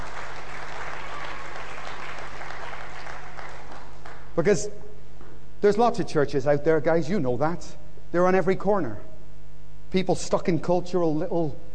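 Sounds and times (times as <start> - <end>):
audience applause: 0.0 - 4.4
speech: 4.4 - 4.9, 5.6 - 9.1, 9.9 - 11.7.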